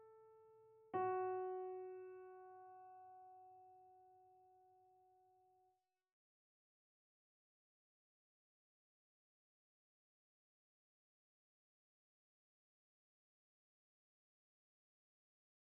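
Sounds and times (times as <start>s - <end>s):
four-part SATB harmony on piano: 0.0s - 4.2s.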